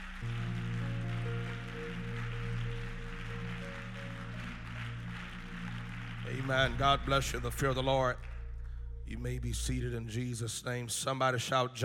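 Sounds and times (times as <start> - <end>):
crowd clapping loudly: 0.0 - 8.4
organ-like chords: 0.0 - 10.8
speech: 6.3 - 8.3, 9.1 - 11.8.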